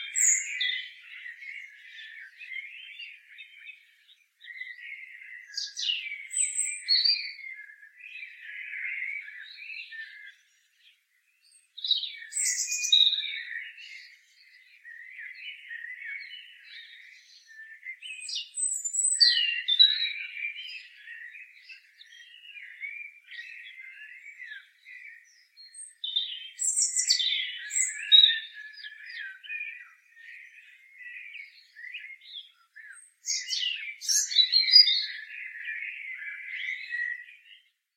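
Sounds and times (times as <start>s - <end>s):
European robin singing: 0.0s - 37.9s.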